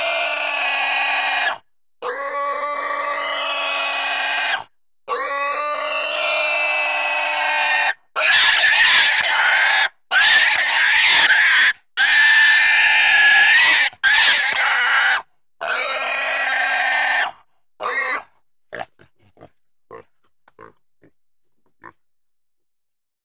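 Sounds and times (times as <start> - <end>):
pig squealing intensely: 0.0 - 18.9.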